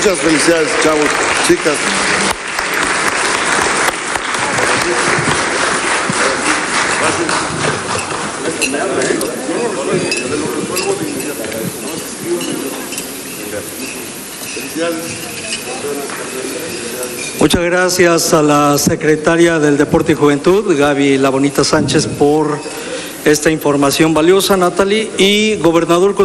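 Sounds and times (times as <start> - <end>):
speech: 0.0 - 2.9, 14.8 - 26.2
crowd applauding: 0.0 - 12.2, 14.6 - 17.2.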